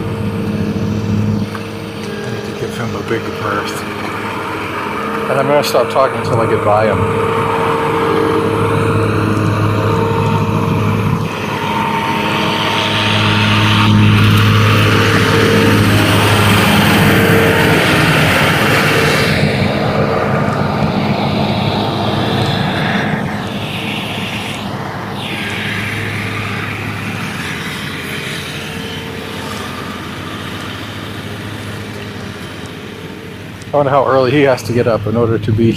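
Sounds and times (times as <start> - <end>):
lawn mower passing by: 0.0 - 34.0
speech: 2.9 - 4.0, 5.3 - 7.6, 33.7 - 35.7.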